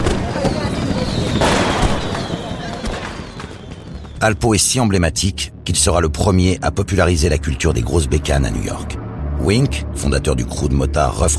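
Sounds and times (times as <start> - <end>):
fireworks booming: 0.0 - 4.4
fireworks crackling: 0.0 - 5.5
faint whistle: 0.2 - 4.4
speech: 4.2 - 11.3.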